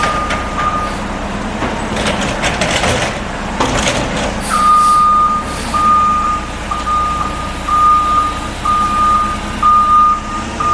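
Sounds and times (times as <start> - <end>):
high reversing beep: 0.0 - 1.0, 4.5 - 10.7
garbage truck idling: 0.0 - 10.7.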